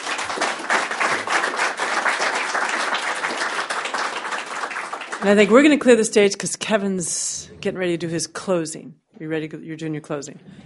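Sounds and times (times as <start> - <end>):
crowd applause: 0.0 - 5.8
speech: 5.2 - 10.6.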